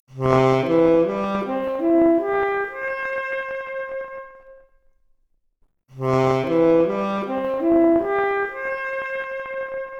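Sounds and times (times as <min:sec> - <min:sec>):
saxophone arpeggio: 0:00.2 - 0:03.4, 0:06.2 - 0:09.9.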